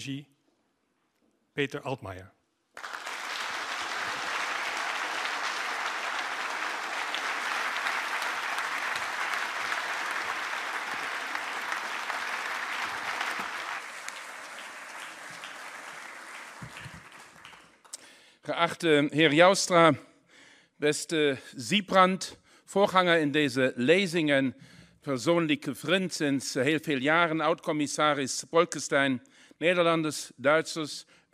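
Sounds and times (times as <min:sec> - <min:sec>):
speech: 0:00.0 - 0:00.3, 0:01.6 - 0:02.4, 0:18.5 - 0:20.1, 0:20.8 - 0:31.3
crowd applause: 0:02.8 - 0:17.9.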